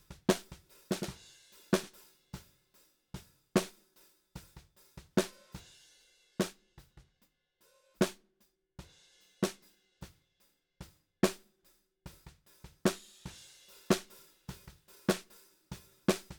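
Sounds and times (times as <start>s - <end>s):
snare drum: 0.0s - 2.0s, 4.4s - 5.6s, 12.3s - 16.3s.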